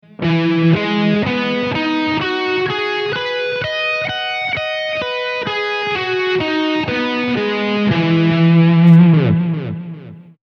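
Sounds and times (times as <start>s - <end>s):
E major nine guitar chord: 0.0s - 10.4s.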